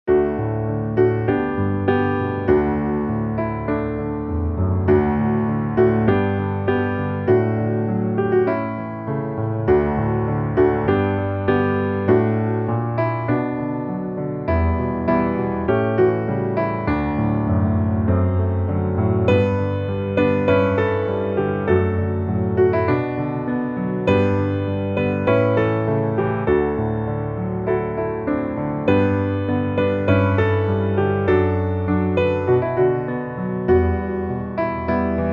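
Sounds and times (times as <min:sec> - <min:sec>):
piano: 0:00.0 - 0:35.3.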